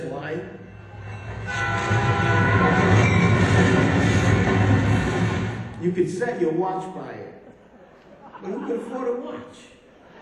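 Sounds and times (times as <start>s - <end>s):
speech: 0.2s - 0.8s, 5.9s - 7.2s, 8.4s - 9.8s
train passing the Choo Choo Club: 0.6s - 5.9s
train horn: 1.0s - 5.7s
laughter: 7.4s - 10.2s.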